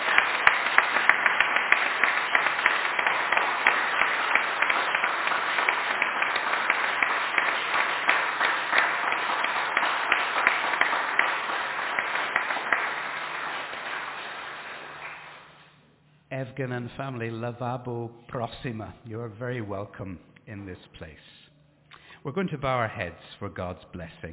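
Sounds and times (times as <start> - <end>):
audience applause: 0.0 - 15.6
speech: 16.6 - 21.3, 22.2 - 24.3.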